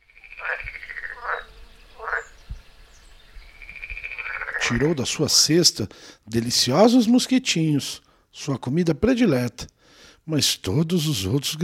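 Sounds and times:
frog croaking: 0.0s - 2.5s, 3.5s - 5.2s
speech: 4.7s - 9.7s, 10.3s - 11.6s.

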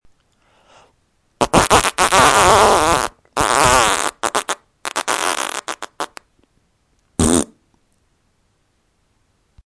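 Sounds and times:
fart: 1.4s - 6.2s, 7.2s - 7.6s.

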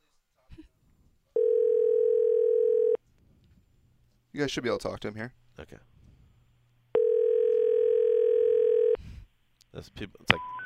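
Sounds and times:
telephone dial tone: 1.4s - 3.0s, 7.0s - 9.0s
speech: 4.4s - 6.0s, 9.7s - 10.6s.

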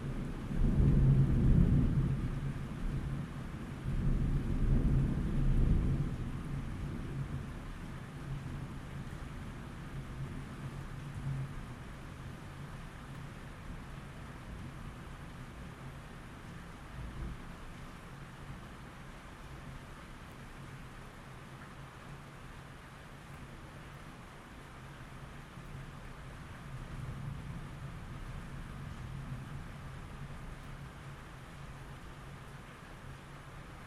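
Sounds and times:
nighttime rain: 0.0s - 33.8s
thunder: 0.3s - 7.5s.

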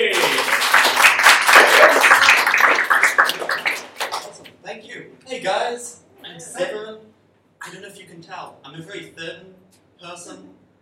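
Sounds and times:
audience applause welcoming performers onto a stage: 0.0s - 4.4s
speech: 7.7s - 10.6s.

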